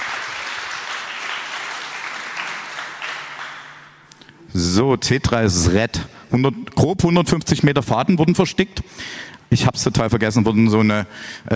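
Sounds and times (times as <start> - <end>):
audience applause: 0.0 - 4.0
speech: 4.6 - 11.5.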